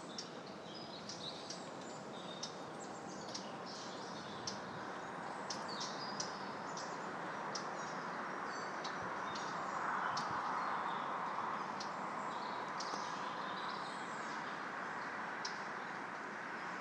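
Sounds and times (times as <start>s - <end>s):
birds: 0.0s - 16.7s
wind: 0.0s - 16.7s.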